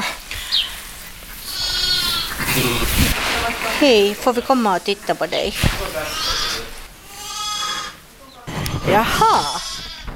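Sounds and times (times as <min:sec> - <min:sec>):
quiet farm noise: 0:00.0 - 0:10.1
newborn lambs about four days old bleating: 0:01.4 - 0:02.6, 0:06.0 - 0:08.0, 0:08.8 - 0:10.1
speech: 0:02.6 - 0:06.4, 0:08.8 - 0:09.7.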